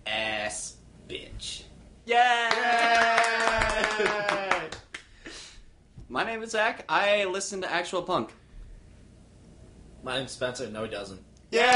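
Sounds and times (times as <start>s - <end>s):
voices cheering: 2.1s - 4.9s, 11.5s - 11.7s
hands clapping: 2.4s - 5.1s, 11.6s - 11.7s
speech: 6.3s - 8.4s, 10.0s - 11.7s.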